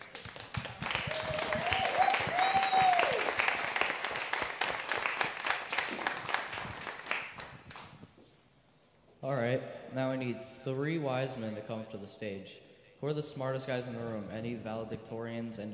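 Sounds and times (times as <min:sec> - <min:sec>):
audience applause: 0:00.0 - 0:07.9
speech: 0:10.2 - 0:15.7.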